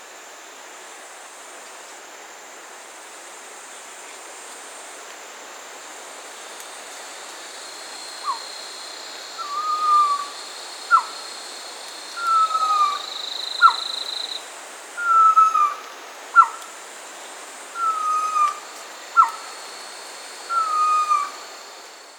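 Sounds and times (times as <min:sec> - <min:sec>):
background hiss: 0:00.0 - 0:22.1
pavonine quetzal calling: 0:09.4 - 0:11.2, 0:12.2 - 0:13.8, 0:15.0 - 0:15.8, 0:17.8 - 0:18.6, 0:19.2 - 0:19.5, 0:20.5 - 0:21.4.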